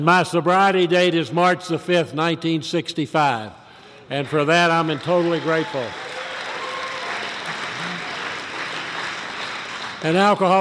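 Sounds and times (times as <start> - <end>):
speech: 0.0 - 6.1, 10.0 - 10.5
audience applause: 4.3 - 10.5.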